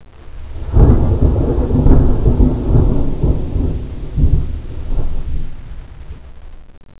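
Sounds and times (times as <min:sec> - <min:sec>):
thunder: 0:00.4 - 0:06.7.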